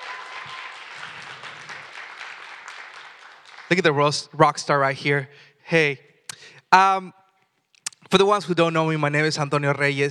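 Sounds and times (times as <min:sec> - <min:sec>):
audience applauding worship team: 0:00.0 - 0:04.2
speech: 0:03.7 - 0:06.1, 0:06.7 - 0:07.2, 0:08.1 - 0:10.1.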